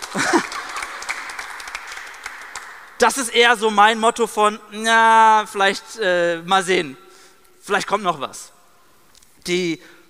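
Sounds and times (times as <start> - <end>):
laughter: 0.0 - 1.3
audience clapping: 0.0 - 3.1
speech: 3.0 - 7.0, 7.7 - 8.6, 9.4 - 10.0.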